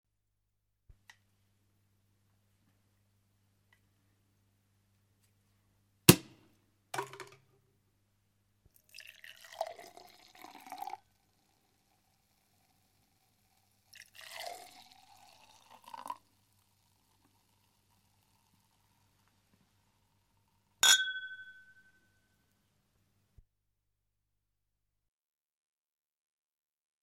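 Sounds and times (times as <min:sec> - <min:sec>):
liquid pouring: 0:08.7 - 0:20.0
bottle uncorking: 0:20.8 - 0:21.8
glasses clinking in a toast: 0:20.8 - 0:22.1.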